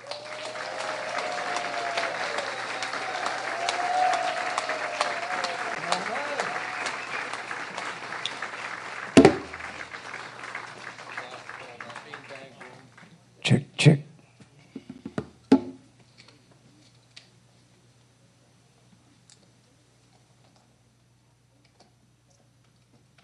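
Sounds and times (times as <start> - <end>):
audience applause for a band at a live show: 0.0 - 13.2
crowd noise at a live show: 0.0 - 13.4.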